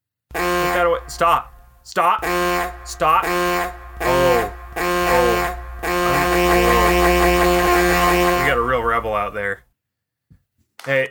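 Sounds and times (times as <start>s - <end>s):
horn honk: 0.3s - 1.6s, 2.2s - 9.3s
speech: 0.8s - 4.5s, 10.8s - 11.0s.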